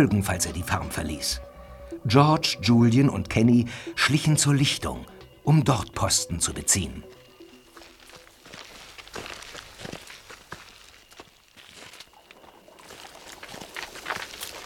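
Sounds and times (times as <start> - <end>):
speech: 0.0 - 7.2
horse-drawn cart approaching: 7.6 - 14.6.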